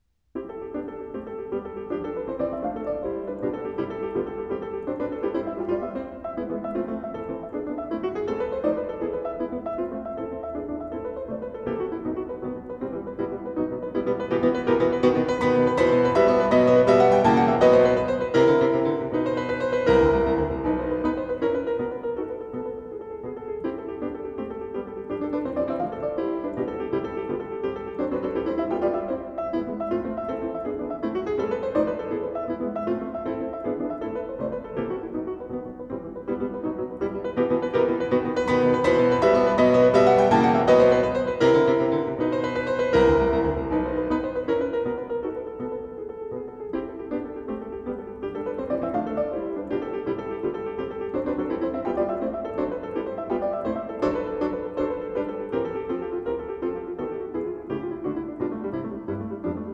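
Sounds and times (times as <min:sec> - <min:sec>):
piano piece in C major: 0:00.0 - 0:59.7.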